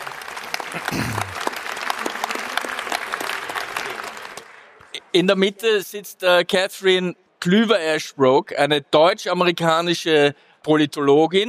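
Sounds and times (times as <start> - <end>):
audience applause: 0.0 - 5.0
speech: 0.7 - 1.4, 5.2 - 11.4.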